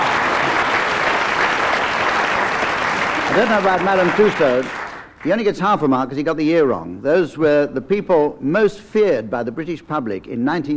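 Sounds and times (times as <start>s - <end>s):
audience applause: 0.0s - 5.3s
speech: 3.4s - 10.7s.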